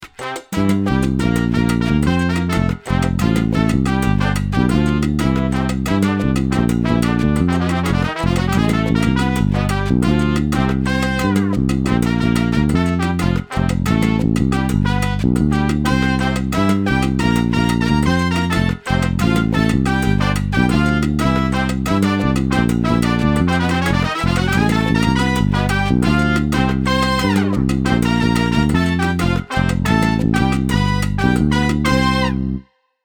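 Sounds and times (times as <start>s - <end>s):
bouncy mambo music: 0.0s - 32.7s.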